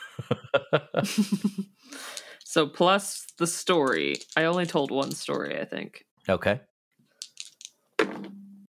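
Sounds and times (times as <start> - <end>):
laughter: 0.0 - 1.7
speech: 0.2 - 6.7
dice rattling and clattering as they land: 2.0 - 5.6, 7.2 - 8.4.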